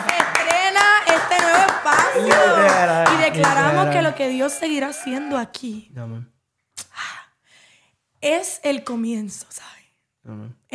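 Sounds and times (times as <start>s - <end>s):
audience clapping: 0.0s - 5.2s
crowd cheering and voices: 1.4s - 5.6s
laughter: 2.0s - 5.4s
speech: 3.3s - 6.4s, 8.2s - 10.7s.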